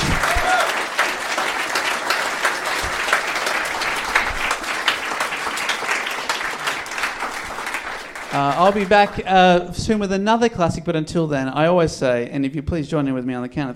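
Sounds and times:
audience applause: 0.0 - 9.6
speech: 8.5 - 13.7.

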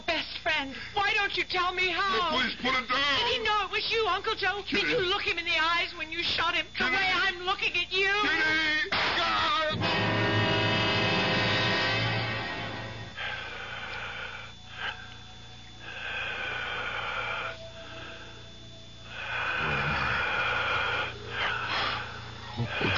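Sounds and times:
speech: 0.6 - 10.1
low hum: 9.8 - 22.9
eerie heavy breathing filling a room: 13.0 - 22.9.

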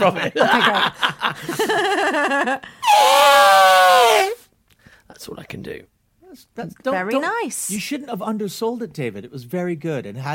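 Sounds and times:
laughter: 0.0 - 2.6
speech: 0.0 - 4.4, 5.2 - 10.3
man imitating an elephant trumpeting: 2.8 - 4.4.

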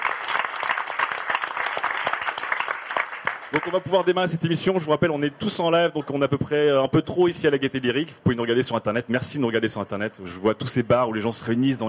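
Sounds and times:
audience applause: 0.0 - 4.2
speech: 3.6 - 11.8.

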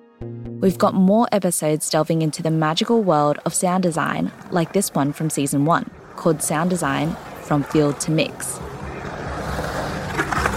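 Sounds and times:
speech: 0.6 - 8.6
skateboard swooshing through a bowl: 2.2 - 10.5
skateboard grinding: 3.8 - 10.5.

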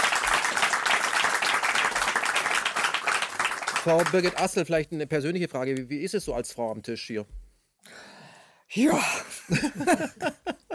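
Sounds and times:
audience applause: 0.0 - 4.6
speech: 3.8 - 8.0, 8.7 - 10.6
laughter: 9.4 - 10.7.

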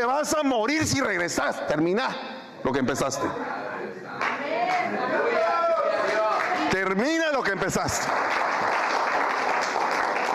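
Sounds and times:
speech: 0.0 - 3.7, 6.8 - 8.6
thin half-hearted audience applause: 4.2 - 10.3.

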